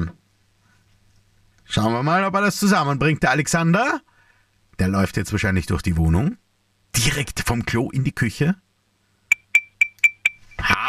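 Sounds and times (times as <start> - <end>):
speech: 1.8 - 4.1, 4.8 - 8.6
spoon tapping on a glass: 9.3 - 10.4.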